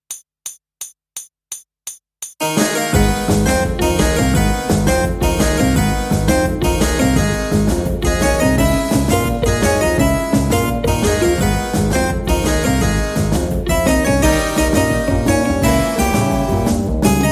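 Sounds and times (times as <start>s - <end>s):
harpsichord: 2.4s - 17.3s.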